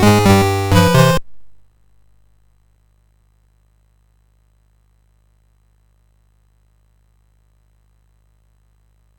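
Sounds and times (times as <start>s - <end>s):
MOS6581R4 SID chip game music: 0.0s - 1.6s.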